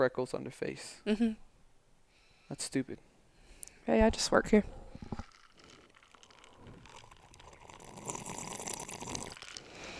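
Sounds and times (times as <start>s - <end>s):
speech: 0.0s - 1.5s, 2.5s - 3.1s, 3.9s - 5.2s
slurping a drink: 4.7s - 9.9s.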